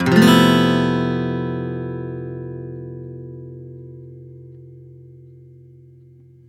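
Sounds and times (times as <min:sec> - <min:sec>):
F# maj7 #11 acoustic guitar chord downstroke: 0:00.0 - 0:06.4.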